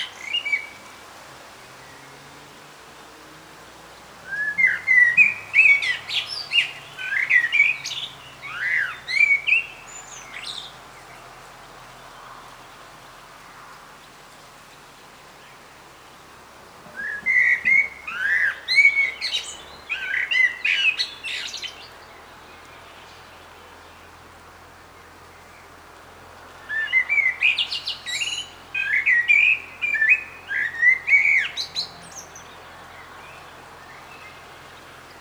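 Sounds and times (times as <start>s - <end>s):
common blackbird singing: 4.3s - 10.7s, 16.9s - 22.0s, 26.6s - 35.1s.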